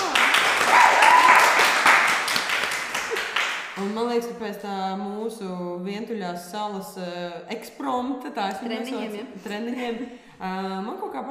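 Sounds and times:
group applause: 0.0s - 4.0s
speech: 3.9s - 11.3s.

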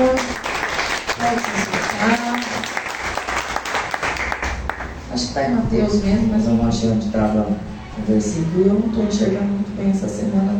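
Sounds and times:
audience applause: 0.0s - 5.0s
speech: 5.4s - 10.5s.

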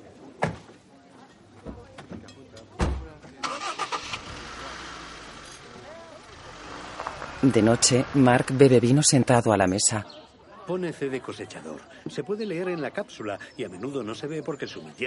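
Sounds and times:
car engine starting and revving as the car pulls away: 3.4s - 8.8s
speech: 7.4s - 15.0s.

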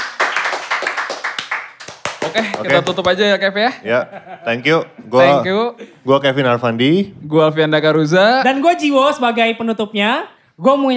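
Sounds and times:
hands clapping: 0.0s - 3.3s
speech: 2.3s - 10.9s.

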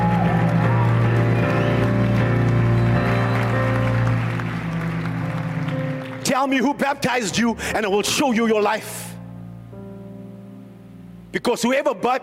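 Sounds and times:
audience clapping hands: 0.0s - 7.0s
speech: 6.4s - 9.1s, 11.3s - 12.2s.

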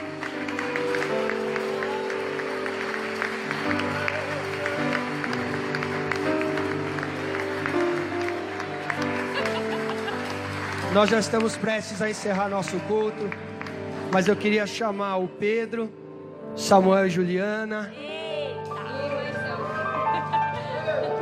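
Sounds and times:
audience applauding: 0.0s - 15.0s
sustained keyboard chords: 0.0s - 21.2s
speech: 11.0s - 13.5s, 14.1s - 16.0s, 16.6s - 18.0s
scattered laughter or voices: 19.8s - 21.2s.

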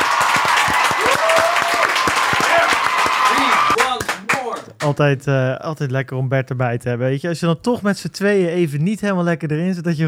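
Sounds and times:
audience applause: 0.0s - 4.7s
speech: 4.8s - 10.0s.

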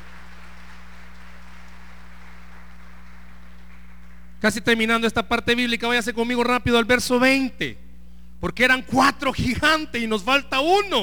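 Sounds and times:
applause: 0.0s - 4.4s
speech: 4.4s - 7.8s, 8.4s - 11.0s.

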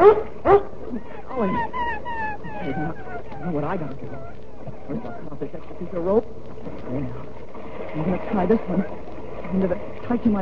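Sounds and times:
hiss: 0.0s - 10.4s
dog yipping and whimpering: 1.4s - 5.3s
speech: 8.4s - 10.4s.

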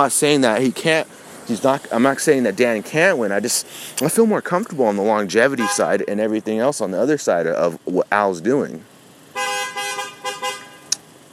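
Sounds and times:
speech: 0.0s - 8.9s
car horn honking in traffic: 5.4s - 6.3s, 9.3s - 11.0s.

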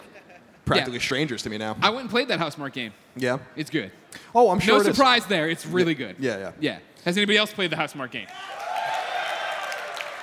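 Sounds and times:
speech: 0.7s - 8.6s
audience applause: 8.3s - 10.2s.

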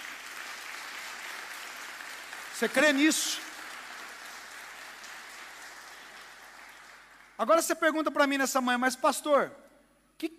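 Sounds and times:
audience applauding: 0.0s - 7.4s
speech: 2.6s - 3.5s, 7.4s - 9.6s, 10.2s - 10.3s.

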